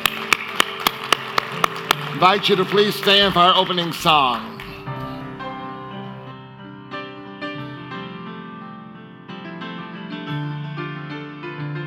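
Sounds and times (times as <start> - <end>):
audience clapping in unison: 0.0 - 5.1
speech: 2.2 - 4.5.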